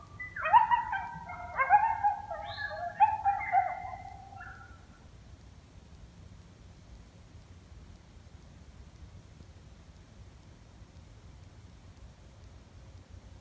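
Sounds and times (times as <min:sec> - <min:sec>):
coyote group chorus of overlapping yips and barks: 0:00.0 - 0:05.0.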